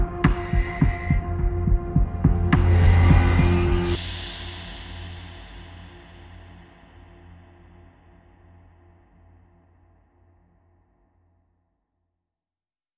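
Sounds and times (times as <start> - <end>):
rhythm: 0.0 - 4.4.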